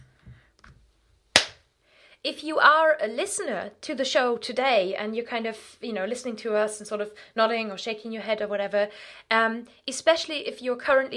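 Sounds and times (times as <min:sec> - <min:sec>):
single hand clap: 0:01.4 - 0:01.6
speech: 0:02.2 - 0:11.1.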